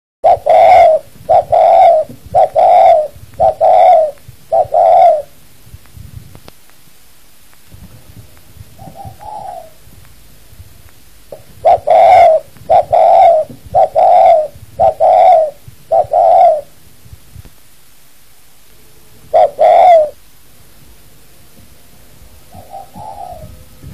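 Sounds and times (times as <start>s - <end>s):
spotted dove cooing: 0.2s - 5.4s, 7.8s - 16.8s, 19.2s - 20.3s, 21.6s - 23.9s.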